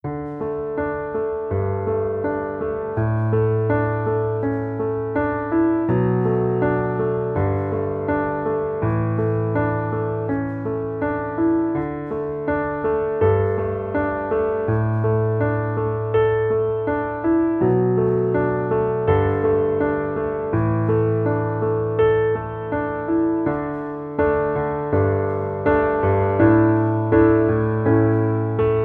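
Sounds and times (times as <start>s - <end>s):
piano underscore: 0.0s - 28.8s.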